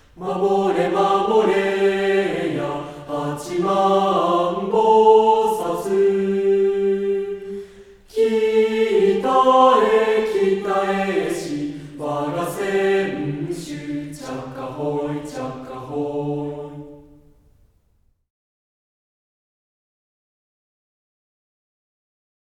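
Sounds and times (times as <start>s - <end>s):
mixed choir singing: 0.0s - 17.3s.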